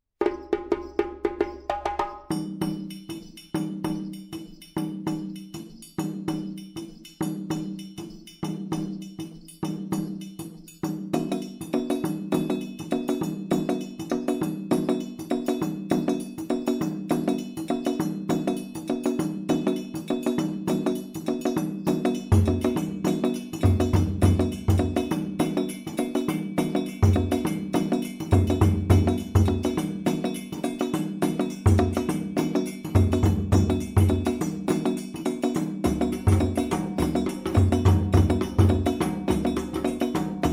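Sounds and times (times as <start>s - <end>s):
djembe playing a kuku build-up: 0.2s - 40.5s.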